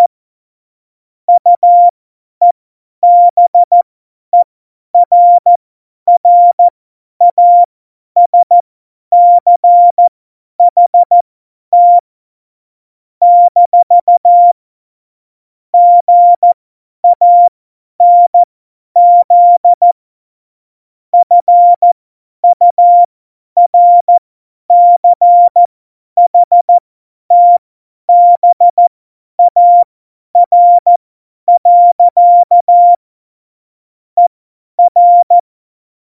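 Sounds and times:
morse code beeps at tempo 70: 1.4s - 1.9s, 3.0s - 3.8s, 5.0s - 8.6s, 9.2s - 11.2s, 11.8s - 12.0s, 13.2s - 14.6s, 15.8s - 20.0s, 21.2s - 33.0s, 34.2s - 35.4s.

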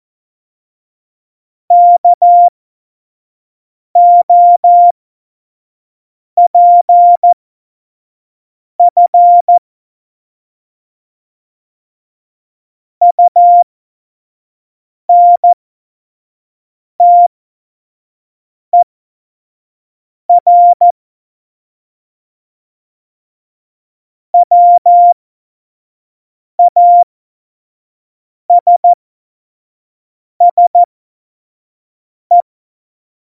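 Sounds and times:
Morse code course beeps: 1.7s - 2.5s, 4.0s - 4.9s, 6.4s - 7.4s, 8.8s - 9.6s, 13.1s - 13.6s, 15.1s - 15.6s, 17.0s - 17.3s, 20.3s - 20.9s, 24.4s - 25.2s, 26.6s - 27.0s, 28.5s - 29.0s, 30.4s - 30.9s.

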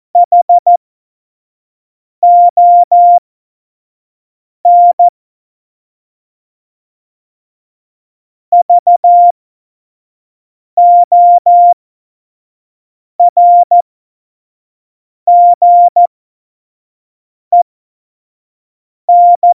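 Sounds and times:
CW Morse code beeps: 0.2s - 0.8s, 2.2s - 3.2s, 4.7s - 5.1s, 8.6s - 9.3s, 10.8s - 11.8s, 13.2s - 13.8s, 15.3s - 16.1s, 19.1s - 19.5s.

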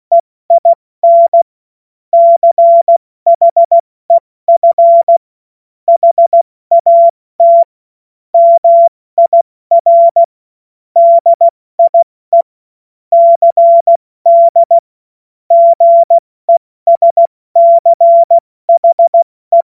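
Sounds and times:
CW Morse code beeps: 0.1s - 1.5s, 2.2s - 3.8s, 4.5s - 5.2s, 5.9s - 7.7s, 8.4s - 10.3s, 11.0s - 12.5s, 13.1s - 14.8s, 15.5s - 19.6s.

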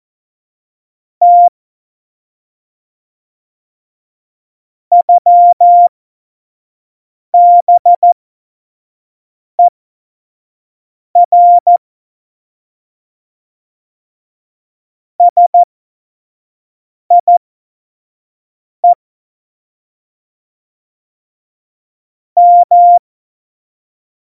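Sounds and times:
CW Morse code at tempo 70: 1.2s - 1.5s, 4.9s - 5.9s, 7.4s - 8.2s, 11.2s - 11.8s, 15.2s - 15.7s, 17.1s - 17.4s, 22.4s - 23.0s.

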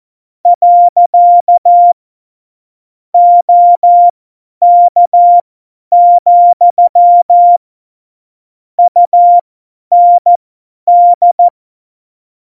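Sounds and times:
Morse code CW keying for a Morse course: 0.5s - 2.0s, 3.2s - 7.6s, 8.8s - 11.5s.

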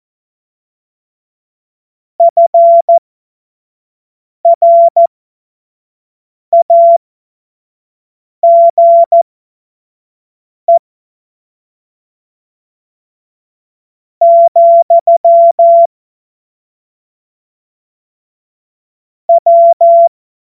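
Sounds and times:
morse code CW: 4.5s - 5.1s, 6.6s - 7.0s, 8.4s - 9.2s, 14.2s - 15.9s, 19.3s - 20.1s.

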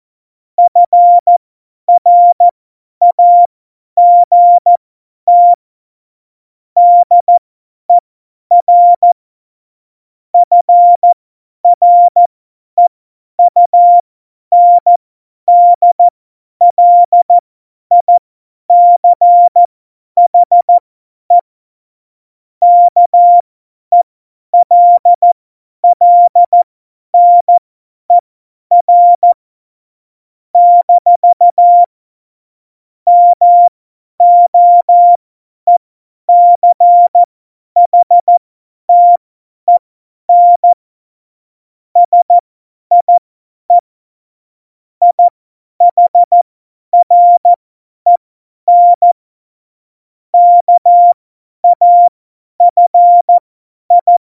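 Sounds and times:
CW Morse code beeps: 0.7s - 1.4s, 2.0s - 2.4s, 3.0s - 5.6s, 6.8s - 7.4s, 8.5s - 9.2s, 10.4s - 12.2s, 12.8s - 19.7s, 20.3s - 21.4s, 22.6s - 24.0s, 24.6s - 29.4s, 30.6s - 31.9s, 33.1s - 40.8s, 42.0s - 43.8s, 45.0s - 46.4s, 47.0s - 49.2s, 50.4s - 54.2s.

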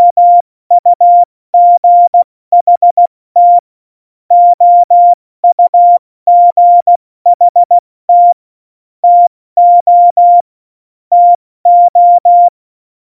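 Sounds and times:
CW Morse code at tempo 70: 0.0s - 3.6s, 4.3s - 8.4s, 9.0s - 10.4s, 11.1s - 12.5s.

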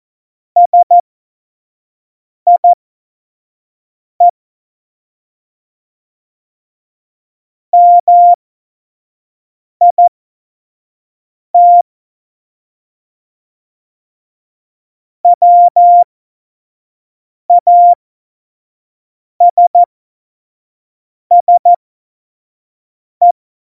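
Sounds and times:
Morse code beeps for a Morse course: 0.6s - 1.0s, 2.5s - 2.8s, 7.8s - 8.4s, 9.8s - 10.1s, 11.6s - 11.8s, 15.3s - 16.0s, 17.5s - 18.0s, 19.4s - 19.9s, 21.3s - 21.8s.

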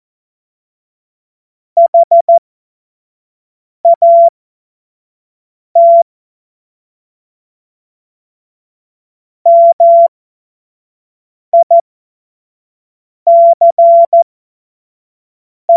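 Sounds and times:
Morse code course tones: 1.8s - 2.4s, 3.9s - 4.3s, 9.5s - 10.1s, 13.3s - 14.2s.

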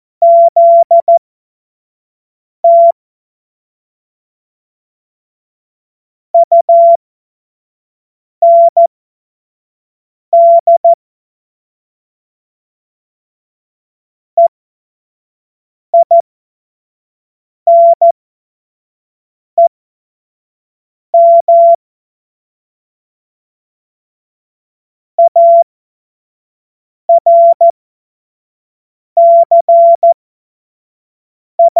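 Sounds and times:
CW Morse code beeps: 0.2s - 1.2s, 2.7s - 2.9s, 6.4s - 7.0s, 8.4s - 8.9s, 10.4s - 11.0s, 17.7s - 18.1s, 21.2s - 21.8s, 25.2s - 25.6s, 27.1s - 27.7s, 29.2s - 30.2s, 31.6s - 31.7s.

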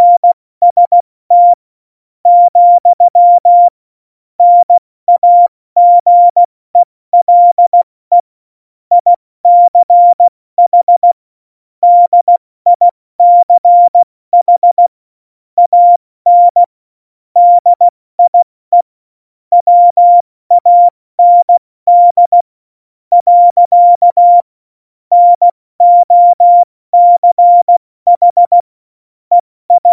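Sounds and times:
CW Morse code beeps: 0.0s - 1.6s, 2.3s - 3.7s, 4.4s - 6.5s, 7.2s - 8.2s, 8.9s - 11.2s, 11.8s - 14.9s, 15.6s - 16.7s, 17.4s - 18.9s, 19.5s - 22.4s, 23.1s - 24.5s, 25.1s - 28.7s, 29.3s - 29.9s.

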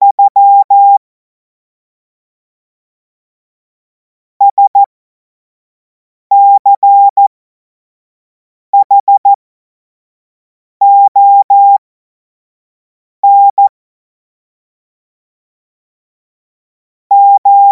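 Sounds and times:
Morse code course tones: 0.0s - 1.0s, 4.4s - 4.9s, 6.3s - 7.2s, 8.8s - 9.3s, 10.8s - 11.8s, 13.2s - 13.7s, 17.1s - 17.7s.

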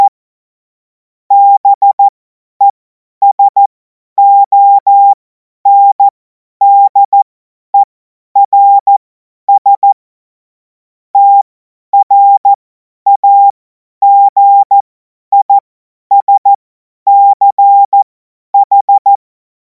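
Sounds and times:
CW Morse code beeps: 1.3s - 2.1s, 3.2s - 7.2s, 7.8s - 10.0s, 11.2s - 19.2s.

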